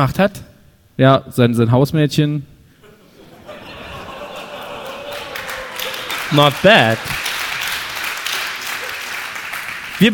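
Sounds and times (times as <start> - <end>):
speech: 0.0 - 2.5, 6.3 - 7.2, 10.0 - 10.1
laughter: 2.8 - 7.2
audience clapping: 4.3 - 10.1.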